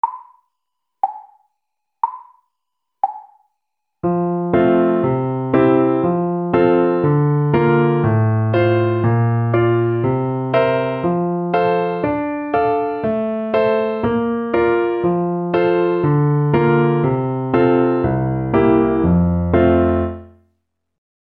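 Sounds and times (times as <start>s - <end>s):
piece in F major: 4.0s - 20.3s.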